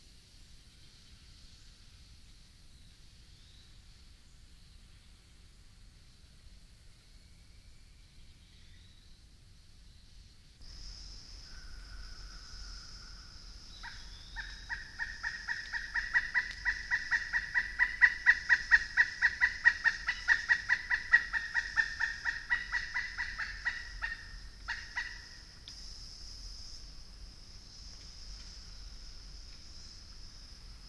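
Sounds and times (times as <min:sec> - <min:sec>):
distant Pileated Woodpecker: 0:11.4 - 0:25.9
Pileated Woodpecker hammering on a tree with its beak in Indian Springs: 0:13.8 - 0:25.2.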